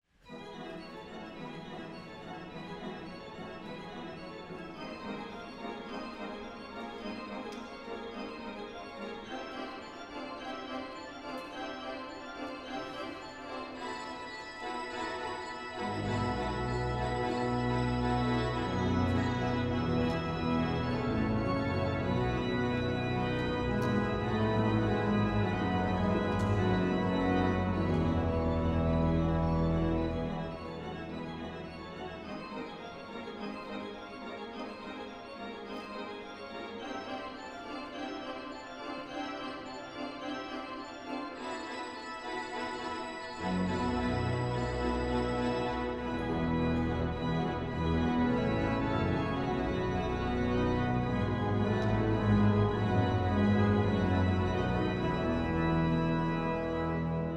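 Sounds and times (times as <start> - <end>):
organ solo: 0.3 - 57.3.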